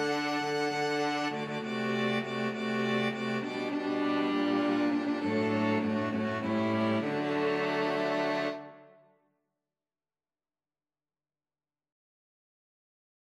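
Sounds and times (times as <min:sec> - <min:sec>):
string quartet: 0:00.0 - 0:08.8.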